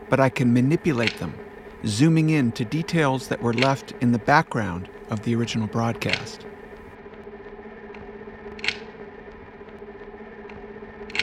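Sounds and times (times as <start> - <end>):
constant low electrical hum: 0.0 - 11.2
speech: 0.1 - 6.5
steady regular clicking of operating light: 1.0 - 1.3, 3.5 - 3.9, 8.6 - 8.8.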